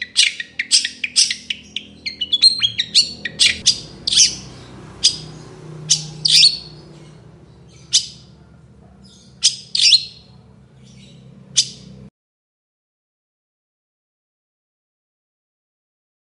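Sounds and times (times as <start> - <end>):
long-tailed shrike chirping: 0.0 - 8.4, 9.0 - 12.0.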